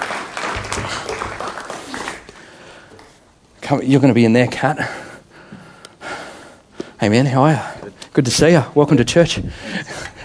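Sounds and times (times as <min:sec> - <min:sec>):
round of applause: 0:00.0 - 0:02.6
speech: 0:03.7 - 0:05.0, 0:07.0 - 0:09.9.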